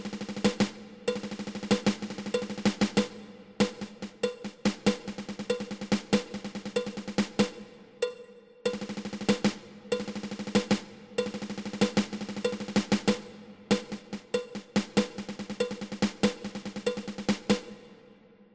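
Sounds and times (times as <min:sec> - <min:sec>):
ten stroke drum roll: 0:00.0 - 0:07.7, 0:08.7 - 0:17.9.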